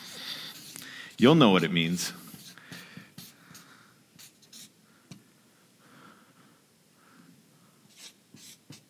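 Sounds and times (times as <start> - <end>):
pen scratching on paper writing a word: 0.0 - 3.6, 4.2 - 4.8, 7.9 - 8.8
speech: 1.2 - 2.2.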